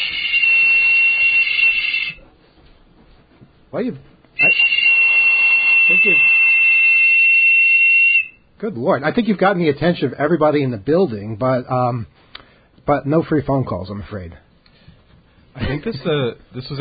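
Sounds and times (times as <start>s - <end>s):
whistle blown hard with shrill tone: 0.0s - 2.2s, 4.4s - 8.5s
speech: 3.7s - 4.7s, 5.9s - 6.3s, 8.6s - 12.2s, 12.8s - 14.4s, 15.6s - 16.8s.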